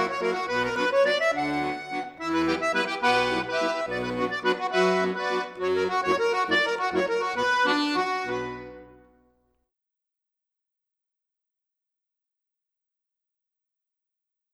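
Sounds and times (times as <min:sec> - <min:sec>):
accordion composition: 0:00.0 - 0:09.2.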